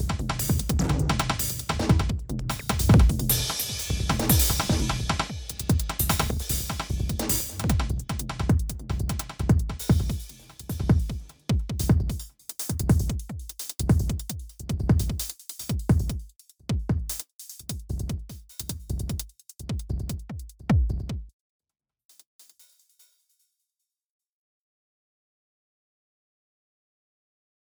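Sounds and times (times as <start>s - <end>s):
drum sequence: 0.0s - 21.2s.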